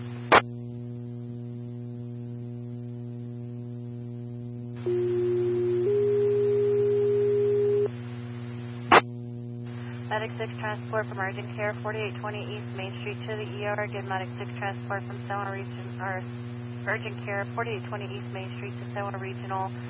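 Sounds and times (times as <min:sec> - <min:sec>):
dispatch alert tones: 0:04.9 - 0:07.9
speech: 0:10.2 - 0:19.8.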